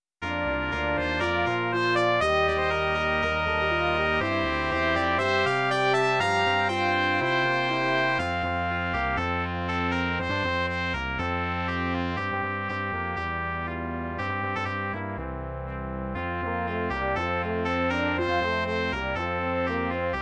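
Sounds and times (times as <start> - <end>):
brass quintet: 0.2 - 20.2.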